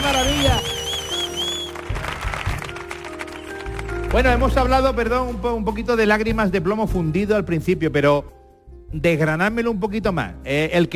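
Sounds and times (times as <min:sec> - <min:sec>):
audience cheering and applauding: 0:00.0 - 0:04.3
speech: 0:00.1 - 0:00.8, 0:04.1 - 0:10.9.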